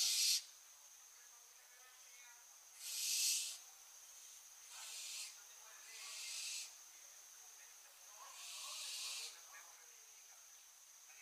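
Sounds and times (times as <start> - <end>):
barn owl Tyto alba screeching: 0.0 - 0.5, 2.8 - 3.6, 4.7 - 6.8, 8.3 - 9.4.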